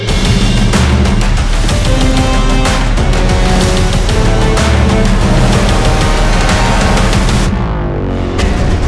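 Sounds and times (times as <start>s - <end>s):
dobro sound effects: 0.1s - 8.7s.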